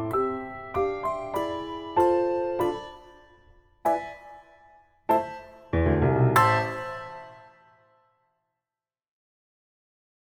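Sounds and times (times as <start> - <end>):
handbells playing: 0.1 - 4.5, 6.4 - 7.5.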